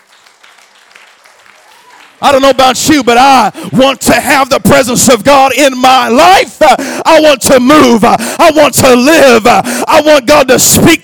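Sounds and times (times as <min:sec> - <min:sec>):
audience clapping hands: 0:00.0 - 0:03.1
speech: 0:02.2 - 0:11.0.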